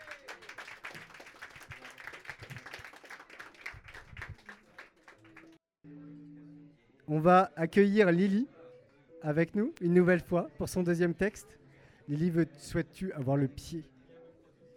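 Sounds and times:
crowd applauding: 0.0 - 5.6
speech: 7.1 - 8.5, 9.2 - 13.9.

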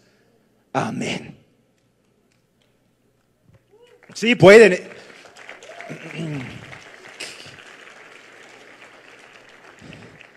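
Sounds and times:
speech: 0.8 - 1.4, 4.2 - 5.0
audience applauding: 3.8 - 10.3.

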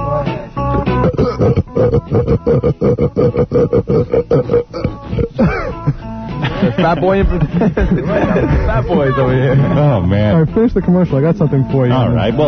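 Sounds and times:
rapid repeated belching: 0.7 - 6.0
laughter: 0.7 - 11.1
speech: 1.4 - 2.9, 6.8 - 12.4.

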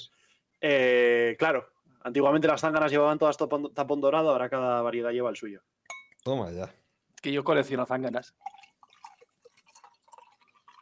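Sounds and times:
speech: 0.6 - 8.6
drink pouring into a glass: 8.2 - 10.7.

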